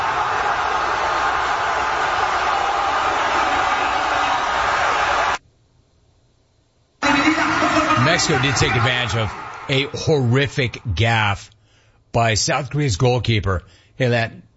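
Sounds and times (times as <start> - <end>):
stadium crowd roaring in Guadalajara: 0.0 - 5.4, 7.0 - 11.4
speech: 8.2 - 14.5.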